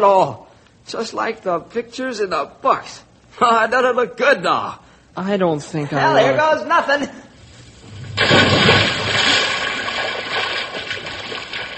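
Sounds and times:
speech: 0.0 - 7.2
churning, sloshing water: 7.4 - 11.7
person jumping into water: 8.0 - 11.7.

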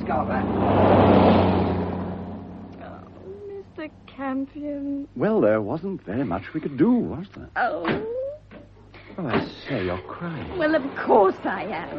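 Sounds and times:
car engine rumbling: 0.0 - 5.2
speech: 0.1 - 1.0, 3.9 - 8.2, 9.2 - 11.9.

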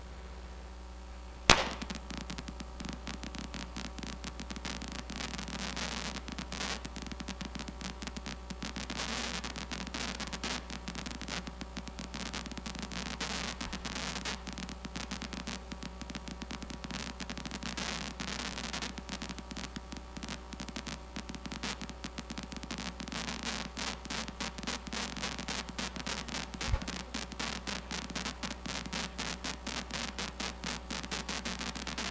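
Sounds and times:
steady electrical hiss and low hum: 0.0 - 32.1
amplified single neuron firing crackles: 1.4 - 32.1
sharp click: 1.5 - 2.0.

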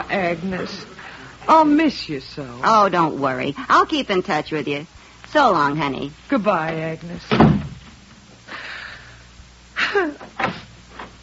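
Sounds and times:
speech: 0.1 - 7.4
front door slamming: 7.3 - 8.0.

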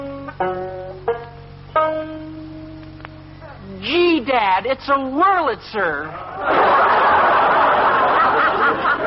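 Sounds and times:
banjo picking a short tune: 0.0 - 3.9
speech: 4.3 - 7.1
laughter: 6.1 - 9.0.

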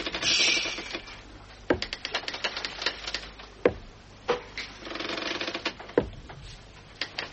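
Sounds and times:
creaking and clattering: 0.0 - 7.3
ivory peg leg tapping on a wooden deck: 1.6 - 4.6, 5.6 - 6.4.

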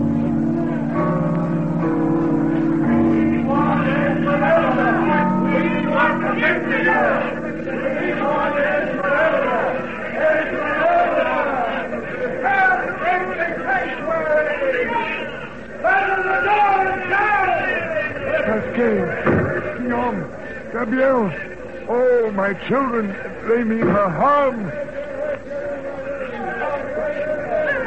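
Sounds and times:
angry crowd gathering outside cathedral: 0.0 - 27.8
speech: 20.8 - 24.8.

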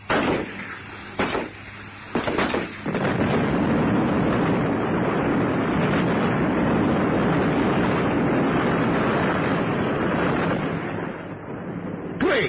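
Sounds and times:
sharp bursts: 0.0 - 3.8
helicopter exploding and crashing: 0.0 - 12.4.

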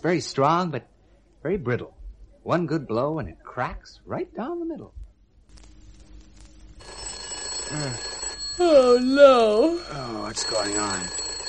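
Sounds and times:
speech: 0.0 - 5.0, 7.7 - 11.2
telephone bell ringing: 6.8 - 11.4.

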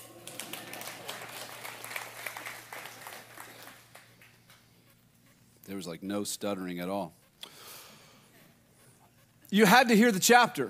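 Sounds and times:
audience clapping: 0.0 - 4.8
low electrical hum: 0.0 - 10.6
speech: 5.7 - 7.2, 9.5 - 10.6.

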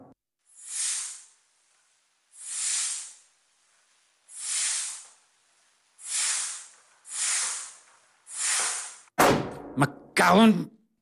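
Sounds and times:
air hissing from leaking organ bellows: 0.5 - 1.7, 2.3 - 9.1
speech: 9.8 - 10.8.

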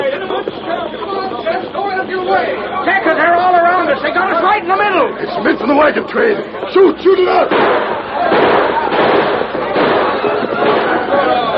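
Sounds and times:
indistinct voices: 0.0 - 11.5
speech: 4.6 - 8.6
gunshots in a gunfight: 7.4 - 11.5.

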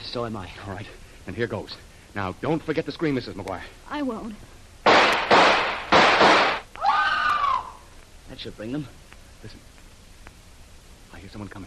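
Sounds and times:
speech: 0.1 - 4.6, 8.3 - 9.7, 11.2 - 11.6
revolver shots: 4.9 - 6.6.

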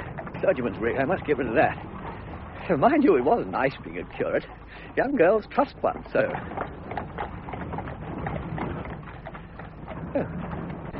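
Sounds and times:
horse hooves clip-clopping: 0.0 - 10.9
speech: 0.4 - 1.9, 2.7 - 6.8, 10.2 - 10.5.

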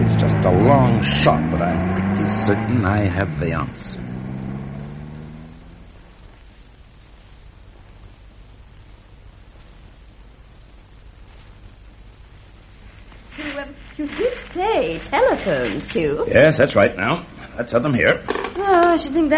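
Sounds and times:
car engine starting after the ignition is switched on: 0.0 - 6.2
speech: 0.4 - 4.1, 14.9 - 19.3.

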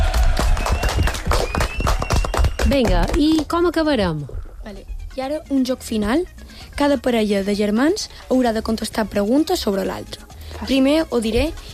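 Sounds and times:
small group clapping during a sibling quiz game: 0.0 - 3.6
speech: 2.7 - 11.7.

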